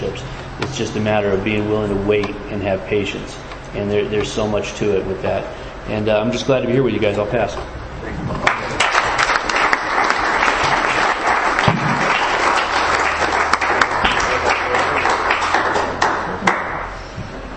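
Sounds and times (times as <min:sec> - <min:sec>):
speech: 0:00.2 - 0:08.4
audience applause: 0:08.4 - 0:16.9.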